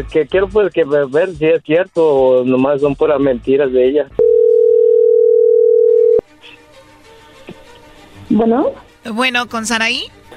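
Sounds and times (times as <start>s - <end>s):
speech: 0.0s - 4.3s, 8.3s - 10.2s
telephone dial tone while placing a call: 4.2s - 6.2s.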